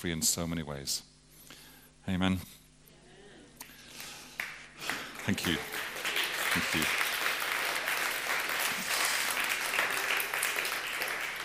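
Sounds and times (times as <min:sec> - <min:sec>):
speech: 0:00.0 - 0:01.1, 0:02.0 - 0:02.6, 0:05.2 - 0:05.8, 0:06.6 - 0:07.0
audience clapping: 0:03.6 - 0:11.4.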